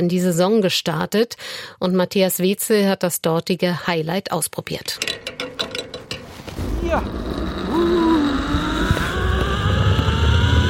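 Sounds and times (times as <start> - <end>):
speech: 0.0 - 5.3, 6.9 - 7.2
rough rushing noise: 6.0 - 10.2
zip line trolley whirring along a cable over a reservoir: 6.7 - 10.6.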